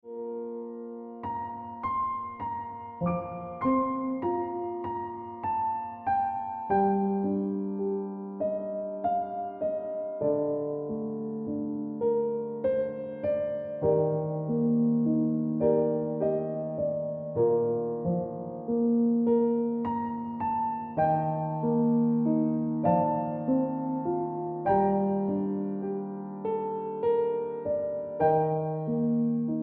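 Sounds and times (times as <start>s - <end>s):
piano music: 0.0s - 29.6s.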